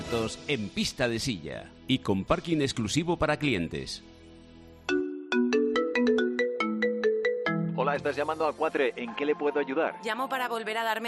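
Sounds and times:
speech: 0.1 - 4.1, 7.8 - 11.0
melodic telephone ringtone: 4.9 - 7.8.

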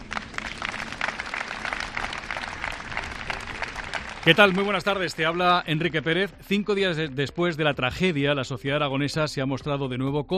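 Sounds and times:
crowd applause ending a minute's silence: 0.0 - 6.3
speech: 4.2 - 10.3.

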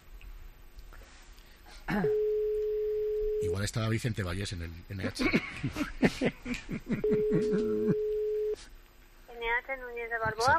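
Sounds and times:
speech: 1.9 - 2.2, 3.5 - 8.7, 9.6 - 10.5
telephone call ringing tone: 2.0 - 3.6, 7.0 - 8.6
laughter: 5.1 - 8.0.

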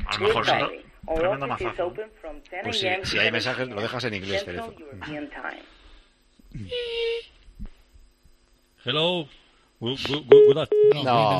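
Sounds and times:
speech: 0.2 - 5.8, 6.5 - 7.3, 8.8 - 11.3
telephone tones from an unanswered call: 10.3 - 11.1.

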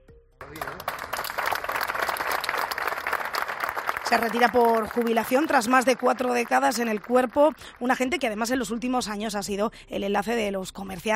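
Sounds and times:
applause at a farewell: 0.4 - 8.5
speech: 4.1 - 11.1.

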